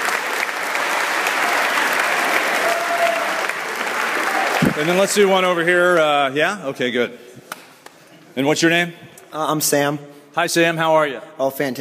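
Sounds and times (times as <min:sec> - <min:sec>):
audience round of applause: 0:00.0 - 0:06.0
speech: 0:04.8 - 0:07.3, 0:08.4 - 0:11.7.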